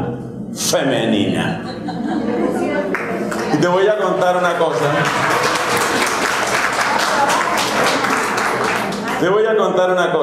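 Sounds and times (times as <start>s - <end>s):
speech: 0.6s - 5.5s, 9.2s - 10.2s
laughter: 1.5s - 3.4s
audience applause: 4.7s - 9.3s.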